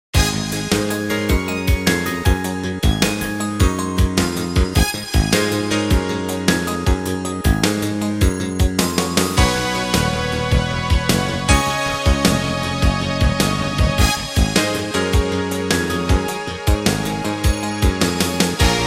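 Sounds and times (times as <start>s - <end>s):
big city music beat: 0.2s - 18.8s.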